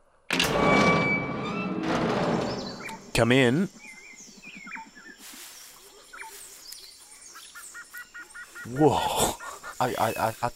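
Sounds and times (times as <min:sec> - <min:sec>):
door being opened: 0:00.3 - 0:03.2
speech: 0:03.2 - 0:03.8, 0:08.7 - 0:10.5.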